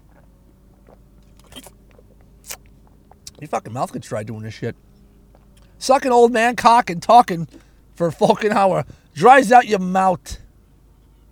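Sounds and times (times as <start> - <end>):
person taking a drink of water: 0.0 - 3.5, 4.9 - 5.8
speech: 3.4 - 4.9, 5.8 - 10.4.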